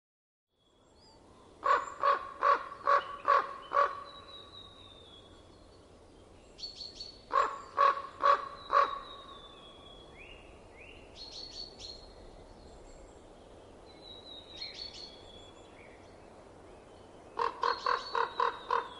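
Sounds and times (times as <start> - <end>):
common raven croaking in winter: 1.6 - 4.1, 7.3 - 9.1, 17.4 - 18.9.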